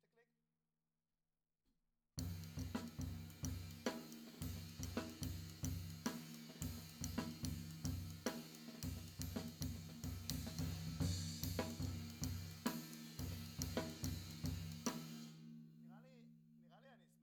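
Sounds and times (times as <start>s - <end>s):
floor tom drum: 2.2s - 15.4s.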